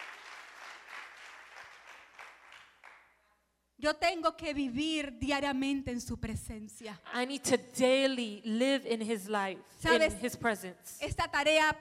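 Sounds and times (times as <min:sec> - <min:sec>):
audience applause: 0:00.0 - 0:03.1
speech: 0:03.8 - 0:11.8.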